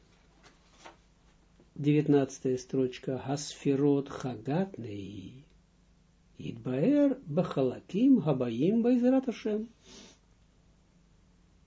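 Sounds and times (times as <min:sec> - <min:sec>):
low hum: 0:00.0 - 0:11.6
book page turning: 0:00.4 - 0:01.0
speech: 0:01.8 - 0:05.5, 0:06.4 - 0:10.1.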